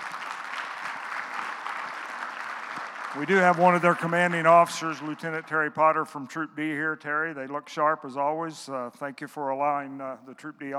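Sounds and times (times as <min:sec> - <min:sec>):
audience applause: 0:00.0 - 0:05.7
speech: 0:03.1 - 0:10.7.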